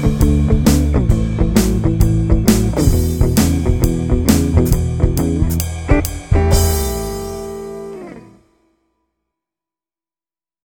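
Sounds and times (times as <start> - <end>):
blues shuffle boogie in E, A and D: 0.0 - 8.3.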